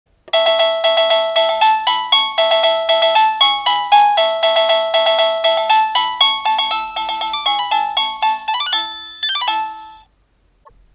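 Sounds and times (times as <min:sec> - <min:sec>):
melody: 0:00.3 - 0:10.0.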